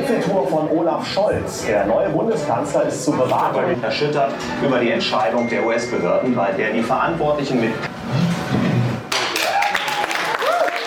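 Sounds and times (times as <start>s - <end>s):
speech: 0.1s - 8.3s
applause in the RT studios in Moscow: 9.1s - 10.8s.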